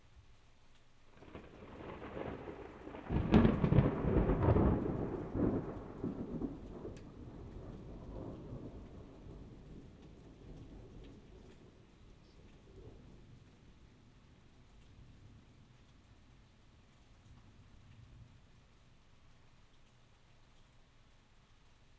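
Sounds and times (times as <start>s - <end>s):
thunder: 1.2s - 11.8s.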